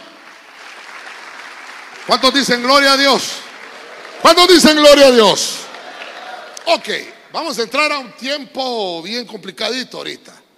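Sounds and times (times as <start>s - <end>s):
audience clapping: 0.0s - 7.1s
speech: 2.1s - 3.4s, 4.2s - 5.6s, 6.7s - 10.4s.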